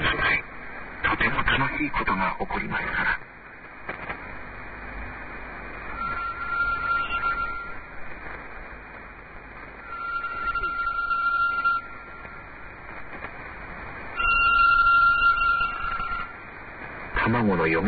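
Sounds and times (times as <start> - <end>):
steady hiss: 0.0 - 17.8
speech: 1.8 - 3.3, 17.7 - 17.8
telephone ringing: 6.0 - 7.8, 9.9 - 12.2, 14.2 - 16.3.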